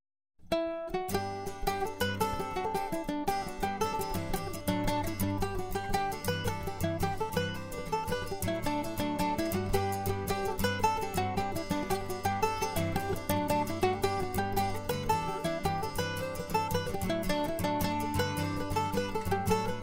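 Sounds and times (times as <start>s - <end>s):
jig tune: 0.5s - 19.8s.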